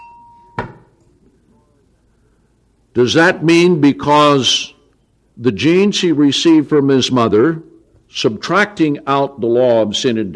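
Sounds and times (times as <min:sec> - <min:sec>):
bell being rung: 0:00.0 - 0:00.6
speech: 0:03.0 - 0:04.8, 0:05.4 - 0:10.3.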